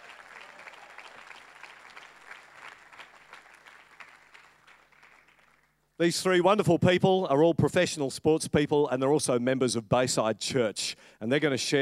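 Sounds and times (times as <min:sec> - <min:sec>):
audience applause welcoming a speaker at a church gathering: 0:00.0 - 0:05.7
speech: 0:06.0 - 0:11.8.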